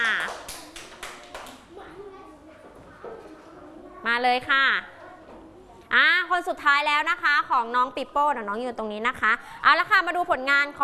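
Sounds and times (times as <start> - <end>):
children clapping: 0.0 - 1.8
speech: 4.1 - 4.9, 5.9 - 10.8.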